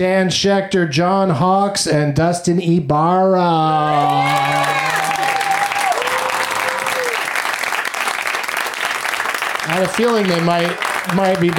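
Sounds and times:
speech: 0:00.0 - 0:05.0, 0:09.7 - 0:11.5
long whooping cheers and drawn-out shouts: 0:03.6 - 0:07.4
crowd applauding: 0:03.9 - 0:11.5.

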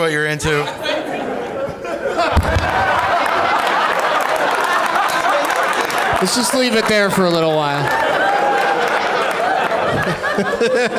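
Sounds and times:
speech: 0:00.0 - 0:01.3, 0:06.2 - 0:08.1, 0:10.4 - 0:10.9
laughter: 0:00.5 - 0:10.9
audience clapping: 0:02.4 - 0:10.7.

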